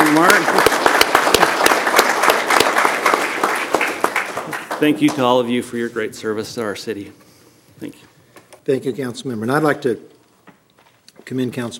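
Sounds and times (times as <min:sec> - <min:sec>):
audience applause: 0:00.0 - 0:05.4
speech: 0:04.8 - 0:07.2, 0:07.8 - 0:08.1, 0:08.7 - 0:10.1, 0:11.3 - 0:11.7.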